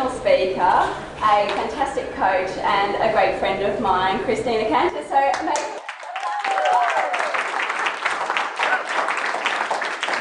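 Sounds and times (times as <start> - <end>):
speech: 0.5 - 5.8
audience applause: 5.8 - 10.1.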